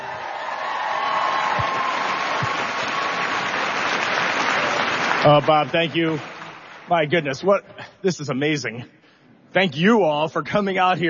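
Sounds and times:
audience applause: 0.0 - 7.2
speech: 5.2 - 6.3, 6.9 - 11.0.

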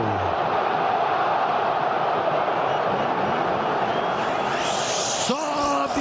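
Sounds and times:
football stadium fans roaring: 0.0 - 5.9.

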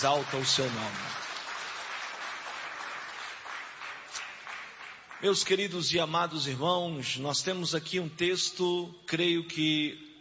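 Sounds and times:
speech: 0.0 - 1.2, 5.2 - 10.1
audience clapping: 0.0 - 5.8.

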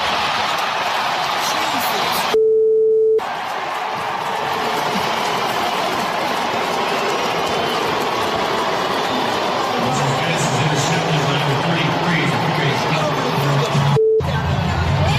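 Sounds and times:
large stadium crowd booing a quarterback: 0.0 - 2.4, 3.2 - 15.1.

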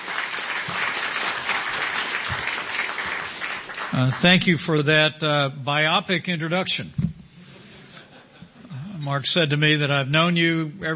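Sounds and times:
audience applause: 0.0 - 4.4
speech: 4.0 - 7.0, 9.1 - 10.9.

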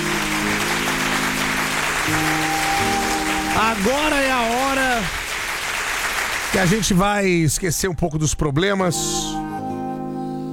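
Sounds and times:
audience applause: 0.0 - 7.2
speech: 3.6 - 5.2, 6.5 - 9.4.

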